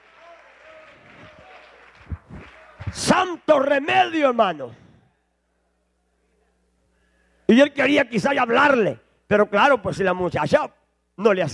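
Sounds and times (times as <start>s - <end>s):
audience applause: 0.0s - 3.2s
speech: 2.9s - 4.8s, 7.5s - 11.5s.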